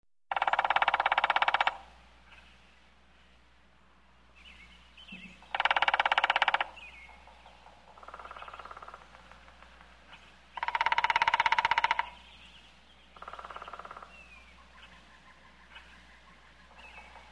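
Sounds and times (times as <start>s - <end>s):
woodpecker drumming: 0.3s - 2.0s, 5.1s - 12.4s, 13.1s - 17.2s.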